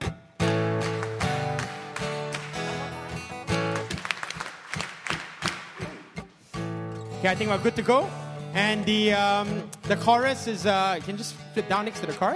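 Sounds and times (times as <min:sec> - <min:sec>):
group clapping along together: 0:00.5 - 0:06.3
speech: 0:07.2 - 0:12.3.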